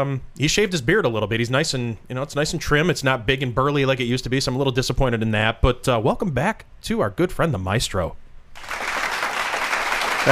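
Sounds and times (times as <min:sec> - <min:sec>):
speech: 0:00.0 - 0:08.8
live studio audience applause: 0:08.6 - 0:10.3.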